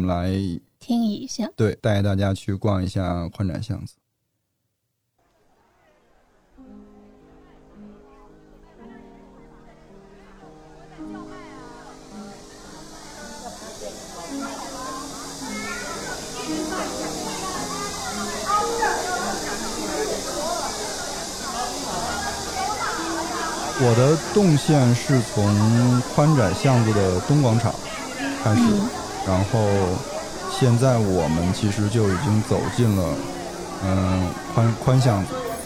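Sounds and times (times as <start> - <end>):
speech: 0.0 - 4.0, 23.8 - 27.8, 28.4 - 35.4
tourist crowd chatter: 5.3 - 35.6
cicadas chirping: 11.2 - 35.6.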